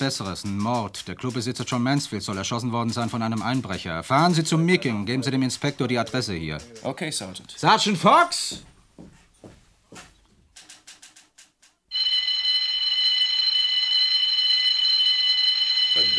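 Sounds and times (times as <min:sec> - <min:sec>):
speech: 0:00.0 - 0:09.1
burglar alarm ringing: 0:11.9 - 0:16.1.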